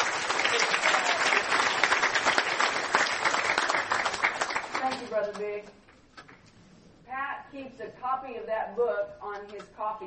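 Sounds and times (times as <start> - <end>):
audience applause: 0.0 - 5.1
speech: 5.2 - 5.8, 7.2 - 10.0.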